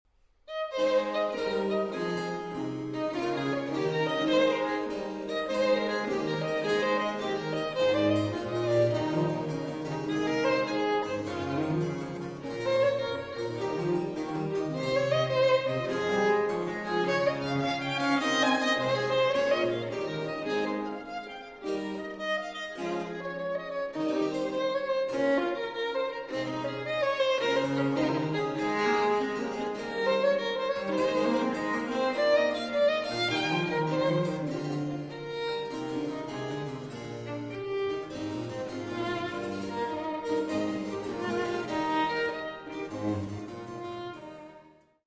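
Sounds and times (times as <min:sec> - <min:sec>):
violin sonata in A major, giga allegro: 0:00.4 - 0:45.0.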